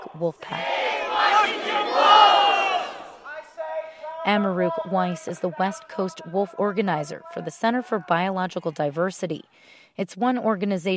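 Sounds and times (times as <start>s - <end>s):
protest crowd chanting: 0.0s - 8.0s
speech: 0.2s - 2.2s, 4.2s - 10.9s.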